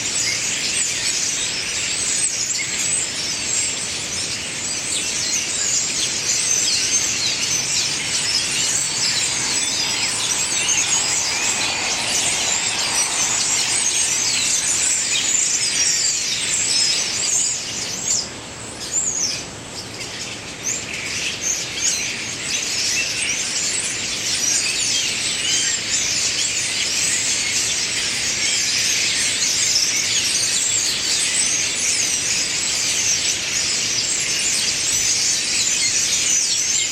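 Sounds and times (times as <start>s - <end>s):
blackbirds singing: 0.0s - 36.9s.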